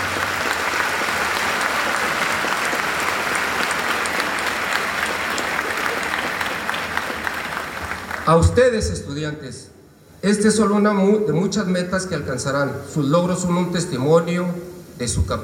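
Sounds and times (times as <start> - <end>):
audience applause: 0.0 - 8.4
speech: 8.3 - 15.4.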